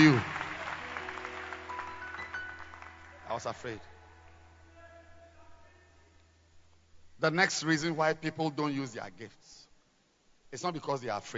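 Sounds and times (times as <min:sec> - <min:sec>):
audience clapping: 0:00.0 - 0:04.4
speech: 0:03.4 - 0:04.0, 0:07.2 - 0:09.7, 0:10.5 - 0:11.3.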